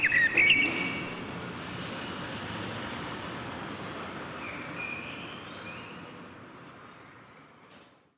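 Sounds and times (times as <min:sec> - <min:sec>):
common blackbird singing mellow whistled phrases in a Berlin backyard: 0:00.0 - 0:01.4, 0:04.4 - 0:06.0.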